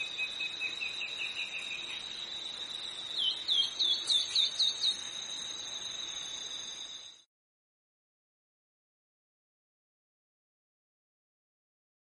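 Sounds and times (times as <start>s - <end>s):
long-winged antwren singing: 0.0s - 2.2s, 3.1s - 5.2s.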